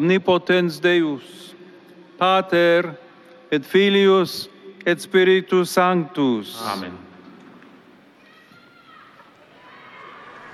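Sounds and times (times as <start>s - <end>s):
speech: 0.0s - 1.6s, 2.2s - 7.0s
large crowd cheering and applauding: 9.4s - 10.5s.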